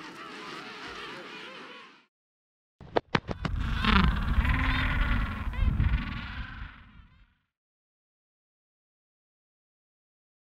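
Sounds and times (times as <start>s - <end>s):
king penguins in Antarctica: 0.0s - 2.1s, 3.2s - 7.3s.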